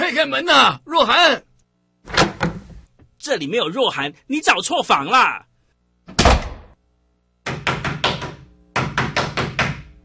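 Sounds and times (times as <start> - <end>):
speech: 0.1 - 2.2, 3.2 - 5.5
knocking on a door: 7.4 - 9.9.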